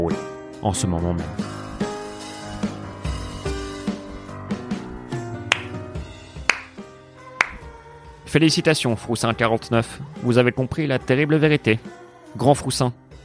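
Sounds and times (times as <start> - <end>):
speech: 0.0 - 1.6, 8.3 - 13.0
sustained musical background: 0.6 - 11.8
slow ironic applause: 4.9 - 5.8, 6.5 - 6.8.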